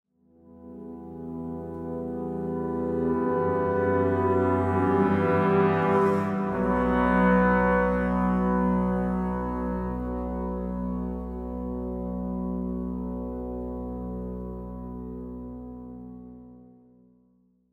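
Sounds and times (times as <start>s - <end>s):
ambient music: 0.4s - 16.9s.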